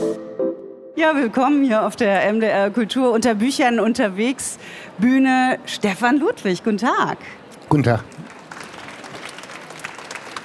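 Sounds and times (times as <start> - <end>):
speech: 1.0 - 8.1
audience applause at a book fair stage: 8.2 - 10.4.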